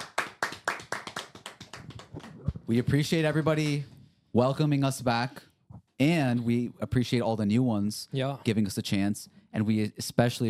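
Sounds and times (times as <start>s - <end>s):
sharp hand claps from a small group: 0.0s - 3.8s
speech: 2.7s - 10.4s.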